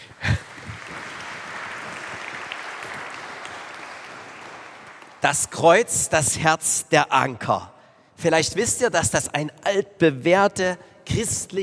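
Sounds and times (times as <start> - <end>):
small group applause: 0.0 - 5.6
speech: 5.2 - 11.6.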